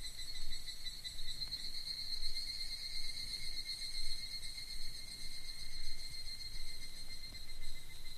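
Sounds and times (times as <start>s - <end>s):
evening cicada calling in a pulsing metallic trill at Kichijoji: 0.0s - 8.1s.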